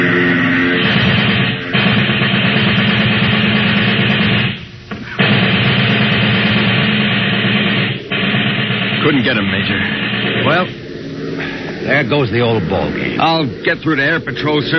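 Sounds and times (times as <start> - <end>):
submachine gun firing at a plane: 0.6 - 10.7
speech: 9.2 - 10.8, 11.9 - 14.7.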